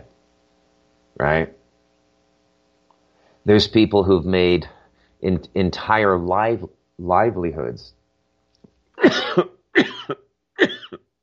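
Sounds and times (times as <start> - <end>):
speech: 1.2 - 1.6, 3.4 - 8.0, 9.0 - 11.0
person coughing after cigar smoke went down the wrong way: 9.0 - 11.0.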